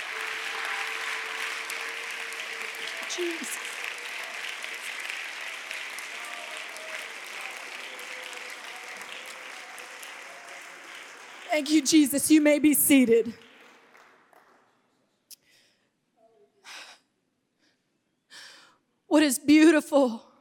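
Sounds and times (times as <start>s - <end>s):
audience clapping in praise: 0.0s - 15.3s
speech: 3.2s - 3.7s, 11.6s - 13.4s, 19.3s - 20.2s.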